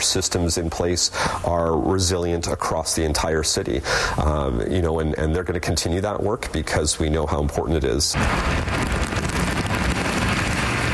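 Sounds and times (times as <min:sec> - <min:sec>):
speech: 0:00.1 - 0:08.9
continual rainfall outdoors: 0:08.2 - 0:10.9
low wind rumble: 0:08.2 - 0:10.9.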